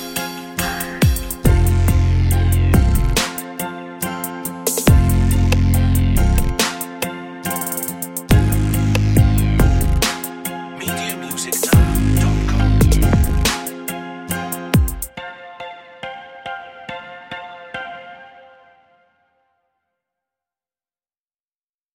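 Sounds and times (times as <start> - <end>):
trap underscore music: 0.0 - 15.2.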